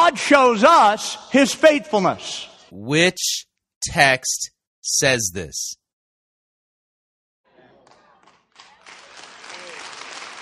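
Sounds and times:
speech: 0.1s - 5.8s
applause: 7.5s - 10.3s.

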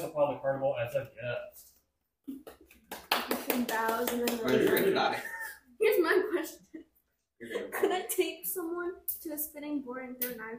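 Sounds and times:
speech: 0.2s - 1.7s, 3.8s - 6.8s, 7.4s - 10.5s
applause: 2.4s - 5.1s.

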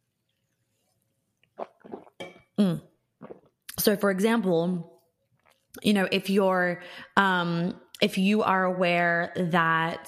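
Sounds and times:
person sipping water: 0.4s - 3.8s
speech: 2.6s - 2.9s, 3.8s - 4.9s, 5.8s - 10.0s.

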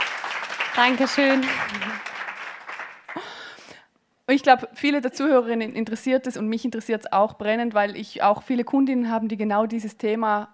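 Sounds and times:
applause: 0.0s - 3.6s
speech: 0.8s - 1.9s, 4.3s - 10.5s.

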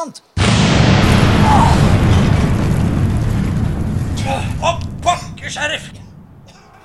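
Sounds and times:
speech: 0.0s - 0.3s, 5.5s - 6.0s
dynamite explosion: 0.4s - 6.6s.

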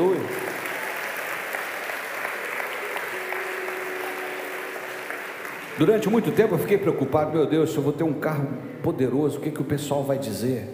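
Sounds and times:
audience applauding: 0.0s - 7.2s
speech: 5.8s - 10.7s.

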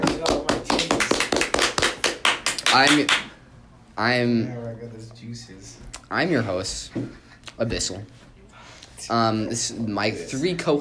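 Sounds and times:
small group clapping: 0.0s - 3.4s
speech: 2.8s - 3.2s, 4.0s - 8.3s, 9.0s - 10.7s.

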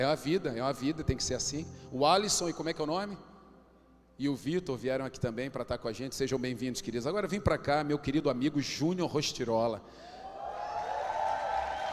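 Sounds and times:
speech: 0.0s - 3.3s, 4.2s - 10.2s
audience applause: 10.4s - 11.9s.

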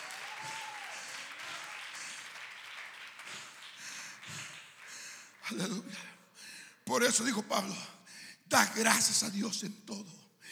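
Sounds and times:
crowd applause: 0.0s - 5.6s
speech: 5.5s - 6.1s, 6.9s - 10.2s.

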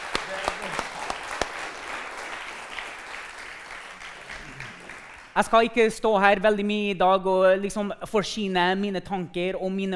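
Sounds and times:
audience clapping: 0.0s - 5.6s
speech: 5.4s - 9.9s.

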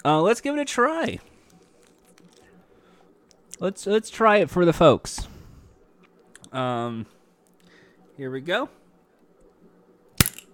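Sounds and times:
speech: 0.0s - 1.3s, 3.6s - 5.3s, 6.5s - 7.2s, 8.2s - 8.8s
faint low hum: 0.0s - 10.5s
soda can popping open: 10.2s - 10.5s.

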